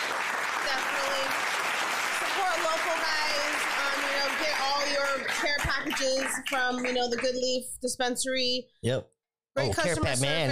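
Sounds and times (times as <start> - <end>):
applause: 0.0 - 7.6
speech: 2.4 - 10.5.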